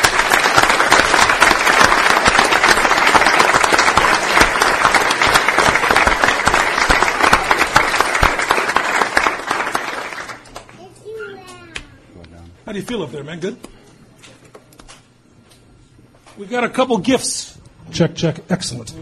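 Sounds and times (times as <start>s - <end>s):
audience applause: 0.0s - 10.8s
speech: 12.8s - 13.7s, 16.4s - 18.9s.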